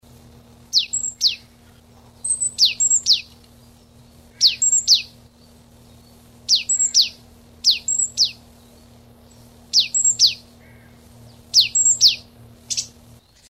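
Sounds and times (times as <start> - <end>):
low hum: 0.0 - 13.4
marsh tit calling: 0.7 - 3.4, 4.1 - 5.2, 6.2 - 8.6, 9.2 - 13.0.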